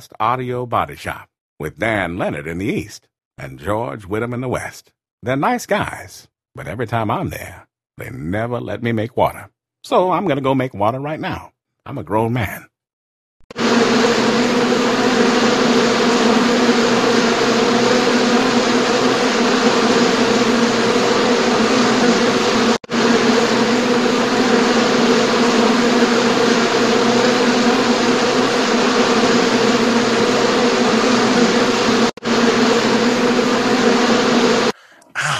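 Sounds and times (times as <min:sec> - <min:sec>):
speech: 0:00.0 - 0:12.7
buzzing flying insects: 0:13.5 - 0:34.8.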